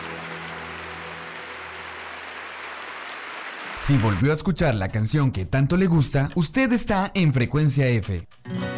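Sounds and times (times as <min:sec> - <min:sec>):
audience applause: 0:00.0 - 0:04.4
speech: 0:03.8 - 0:08.6.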